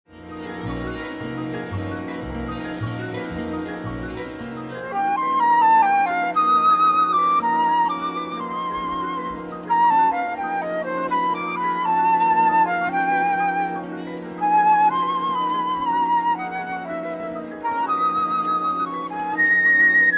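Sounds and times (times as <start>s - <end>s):
flute concerto: 0.1s - 20.1s.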